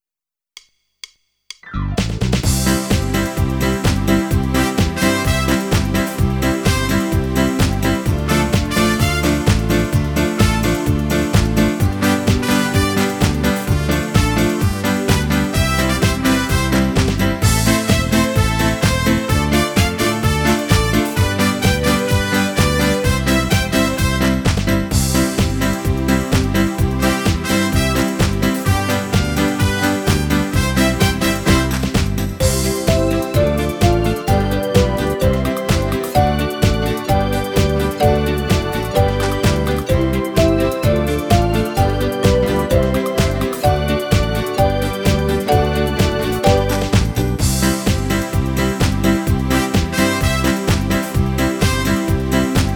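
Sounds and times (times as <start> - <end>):
bal musette dance music playback: 1.6 - 52.7.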